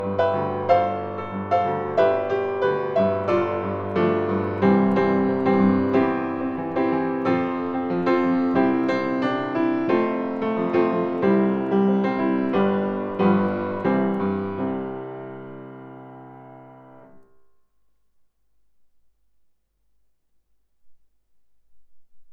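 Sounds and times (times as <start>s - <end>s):
piano: 0.0s - 17.6s.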